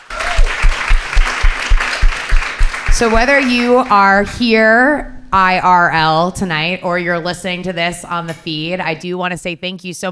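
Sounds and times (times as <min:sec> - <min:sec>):
audience applause for the panelists: 0:00.0 - 0:03.8
speech: 0:03.0 - 0:10.0.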